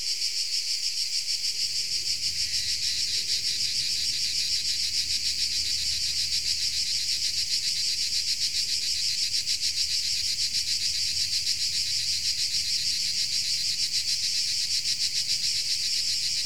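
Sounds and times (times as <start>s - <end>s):
insect chorus buzzing: 0.2s - 16.4s.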